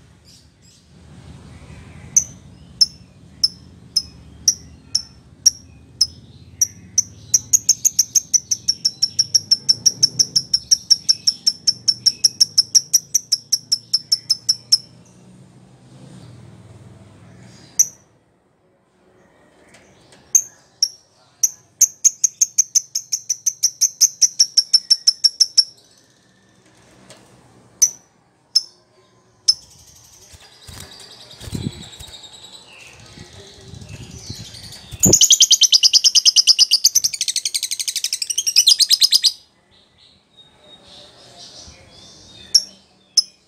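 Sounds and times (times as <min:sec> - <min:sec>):
lovebird chirping: 0:02.0 - 0:15.0, 0:20.2 - 0:26.5, 0:27.8 - 0:39.5, 0:42.2 - 0:43.4.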